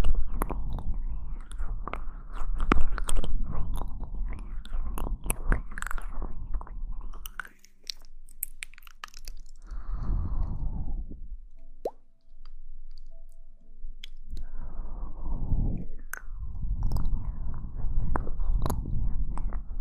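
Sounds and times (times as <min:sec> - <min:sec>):
wet mouth sounds: 0:00.0 - 0:11.1, 0:15.5 - 0:19.7
chewing: 0:01.4 - 0:09.7.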